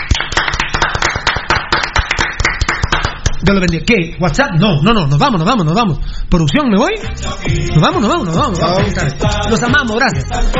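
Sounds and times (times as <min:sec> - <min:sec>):
applause: 0:00.0 - 0:03.2
speech: 0:03.5 - 0:10.5.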